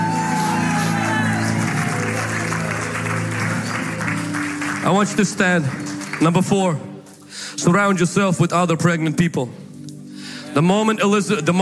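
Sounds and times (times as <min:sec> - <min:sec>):
audience clapping: 0:00.0 - 0:07.2
speech: 0:04.9 - 0:06.9, 0:07.6 - 0:09.6, 0:10.6 - 0:11.6.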